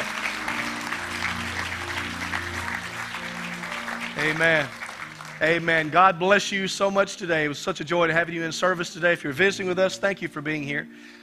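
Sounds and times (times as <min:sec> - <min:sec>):
audience clapping hands: 0:00.0 - 0:06.3
speech: 0:04.2 - 0:04.8, 0:05.4 - 0:11.2.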